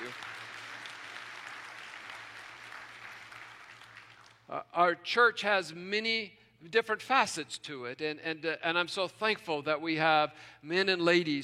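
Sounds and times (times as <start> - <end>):
polite applause from church audience: 0.0 - 4.5
speech: 4.5 - 11.4.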